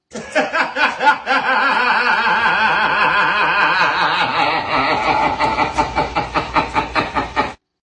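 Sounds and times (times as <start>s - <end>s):
dramatic laughter: 0.0s - 7.6s.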